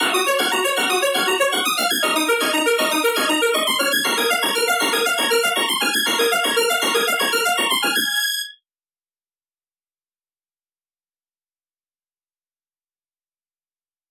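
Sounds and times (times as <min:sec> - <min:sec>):
hyperpop war strings: 0:00.0 - 0:08.2.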